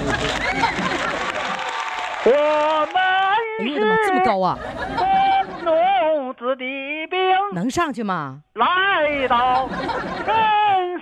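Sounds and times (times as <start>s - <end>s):
audience applause: 0.0s - 3.5s
laughter: 0.0s - 6.3s, 9.0s - 11.0s
speech: 4.3s - 5.0s, 6.4s - 10.6s.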